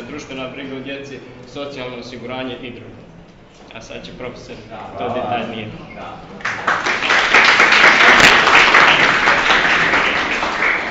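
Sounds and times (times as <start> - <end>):
speech: 0.2 - 3.1, 3.7 - 7.4
audience applauding a speaker: 6.4 - 10.8.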